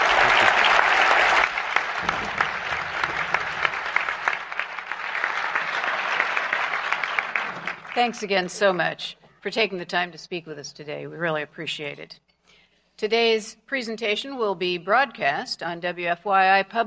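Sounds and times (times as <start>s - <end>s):
audience applause: 0.0s - 8.4s
speech: 8.0s - 12.3s, 13.0s - 16.8s.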